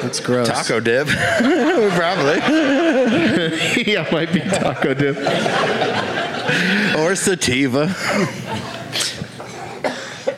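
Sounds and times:
speech: 0.1 - 9.1
laughter: 0.5 - 10.3
person coughing: 9.0 - 10.3.

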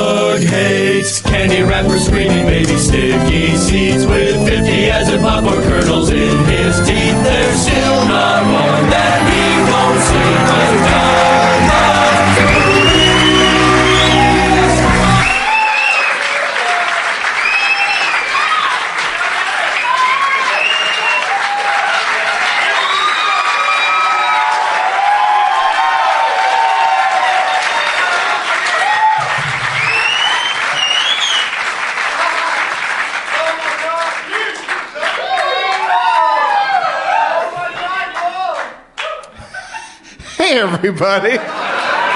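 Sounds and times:
brief musical ending: 0.4 - 15.5
fired up crowd cheering and applauding: 6.3 - 39.3, 41.6 - 42.1
laughter: 32.1 - 32.7, 39.3 - 42.1
speech: 40.8 - 41.6.

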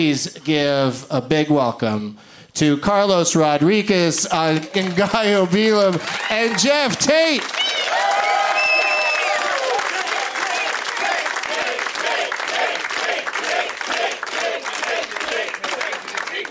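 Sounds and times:
speech: 0.0 - 7.6
crowd yelling: 4.6 - 16.5
crowd chanting: 10.0 - 16.5.

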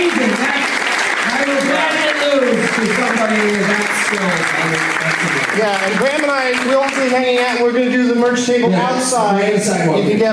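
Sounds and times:
audience applause at a live show: 0.0 - 8.0
speech: 3.2 - 10.3.

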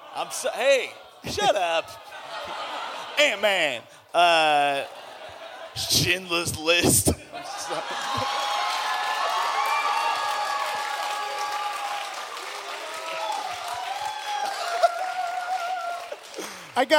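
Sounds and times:
laughter: 0.0 - 8.9, 14.3 - 16.7
speech: 0.2 - 2.6, 3.2 - 5.0, 5.8 - 8.4, 16.8 - 16.9
studio audience clapping at a late-night talk show taping: 7.5 - 16.9.

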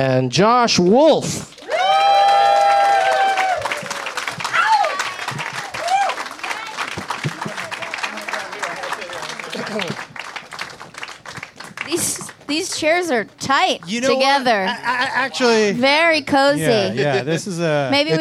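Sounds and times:
speech: 0.0 - 1.5, 12.8 - 18.2
high-pitched whoop: 1.6 - 6.2
audience applause: 1.6 - 14.0
laughter: 7.1 - 10.2, 16.6 - 18.2.

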